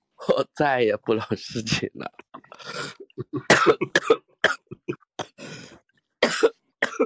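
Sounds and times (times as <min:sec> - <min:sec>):
speech: 0:00.4 - 0:04.2
harsh raspy coughing performed as a comedy act at a talent contest: 0:01.5 - 0:07.0.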